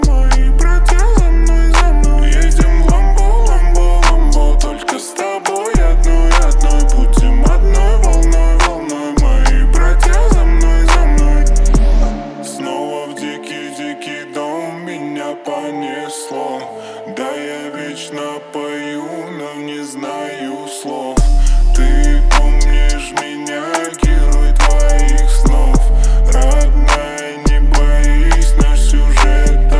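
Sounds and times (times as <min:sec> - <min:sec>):
37-39-41 Hz low bass tone: 0:00.0 - 0:04.8, 0:05.8 - 0:12.5, 0:21.2 - 0:23.1, 0:24.0 - 0:29.7.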